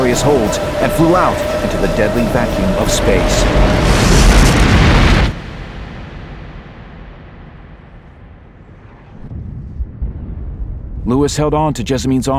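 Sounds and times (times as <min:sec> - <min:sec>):
speech: 0:00.1 - 0:04.1, 0:11.1 - 0:12.3
explosion blowing apart a ship's bulkhead: 0:02.9 - 0:11.8.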